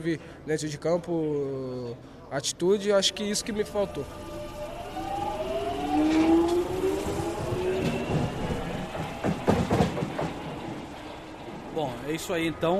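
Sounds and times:
speech: 0.0s - 4.3s, 11.8s - 12.7s
London train arriving at West Hampstead station: 2.8s - 12.7s.

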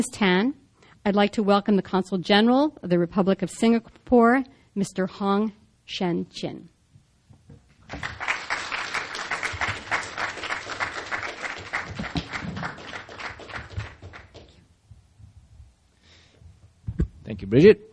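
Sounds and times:
speech: 0.0s - 6.7s, 17.5s - 17.9s
audience applause: 7.9s - 14.6s.

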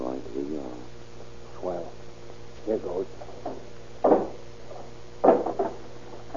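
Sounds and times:
low hum: 0.0s - 6.3s
speech: 2.6s - 3.6s
hammer striking door to force it open: 3.5s - 4.4s, 5.2s - 6.3s.

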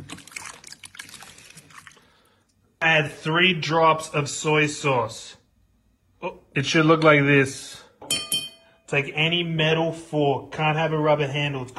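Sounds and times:
water with a battery and salt stirred with a banana: 0.0s - 2.2s
speech: 2.8s - 5.4s, 6.6s - 7.8s, 8.9s - 11.7s.

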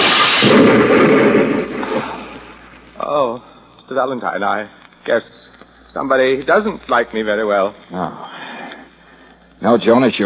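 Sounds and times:
hand grenade explosion sound effect in a radio drama: 0.0s - 2.6s
speech: 3.9s - 5.4s, 6.0s - 8.4s, 9.6s - 10.2s.

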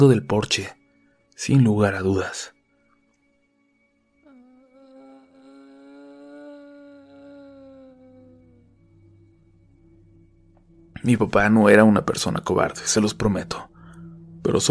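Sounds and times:
speech: 0.0s - 0.8s, 1.4s - 2.6s, 11.0s - 13.7s, 14.4s - 14.6s
eerie whining moan: 4.2s - 10.4s.

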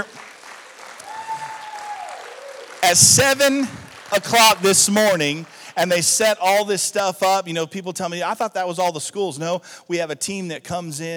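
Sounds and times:
audience applause: 0.0s - 6.1s
speech: 2.9s - 11.1s.

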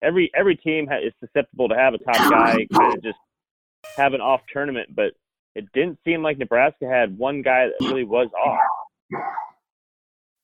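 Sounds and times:
speech: 0.0s - 3.2s, 3.8s - 9.5s
person coughing: 2.2s - 3.0s, 7.8s - 8.0s.

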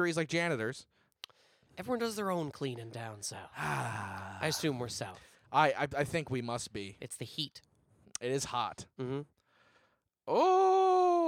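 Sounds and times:
speech: 0.0s - 1.0s, 1.8s - 9.4s, 10.3s - 11.2s
ghostly-sounding yawn: 3.5s - 4.8s.

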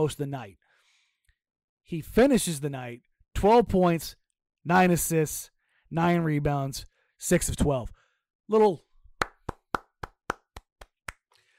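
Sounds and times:
speech: 0.0s - 0.6s, 1.9s - 8.9s
golf clap: 9.2s - 11.3s.

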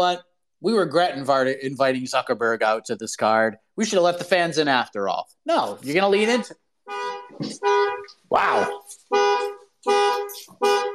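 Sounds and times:
speech: 0.0s - 10.9s
car beeping from its key fob: 6.8s - 10.9s.

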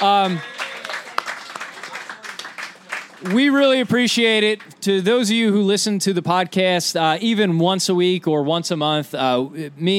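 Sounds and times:
speech: 0.0s - 0.6s, 3.2s - 9.9s
audience applause: 0.0s - 3.6s.

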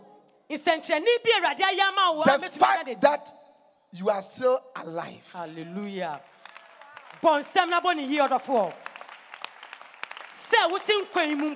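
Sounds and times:
speech: 0.5s - 6.4s, 7.2s - 8.8s, 10.5s - 11.5s
audience clapping: 6.0s - 11.5s.

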